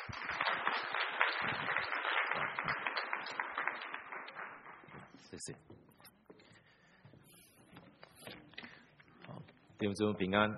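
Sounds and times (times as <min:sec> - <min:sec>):
crowd applause welcoming a speaker: 0:00.0 - 0:05.2
speech: 0:05.3 - 0:05.8, 0:09.8 - 0:10.5.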